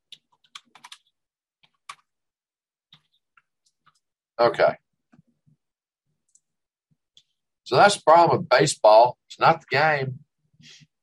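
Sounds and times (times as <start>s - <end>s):
typing a comment on a computer keyboard: 0.1s - 2.1s
speech: 4.4s - 4.8s, 7.7s - 10.9s.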